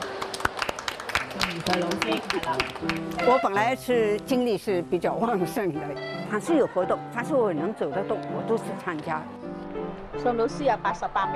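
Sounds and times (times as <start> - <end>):
audience scattered clapping: 0.0 - 3.4
speech: 1.4 - 9.4, 10.2 - 11.3.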